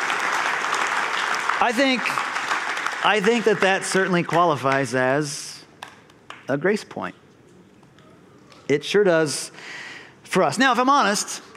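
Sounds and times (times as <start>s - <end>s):
congregation applauding during a church service: 0.0s - 6.4s
speech: 1.6s - 2.3s, 3.0s - 5.4s, 6.5s - 7.2s, 8.7s - 11.5s.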